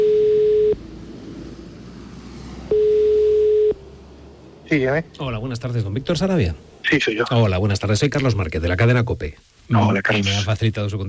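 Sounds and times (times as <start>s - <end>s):
telephone ringback tone: 0.0s - 0.8s, 2.7s - 3.8s
speech: 4.7s - 11.0s
faint line hiss: 6.4s - 11.0s.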